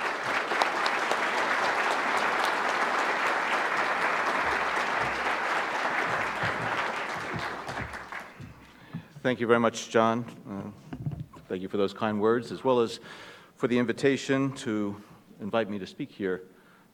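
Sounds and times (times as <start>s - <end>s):
audience applause: 0.0s - 9.1s
speech: 9.2s - 10.4s, 11.5s - 16.9s.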